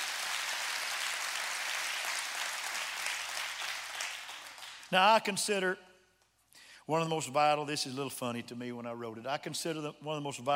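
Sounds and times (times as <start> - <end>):
audience clapping hands: 0.0 - 4.9
speech: 4.9 - 5.9, 6.9 - 10.5.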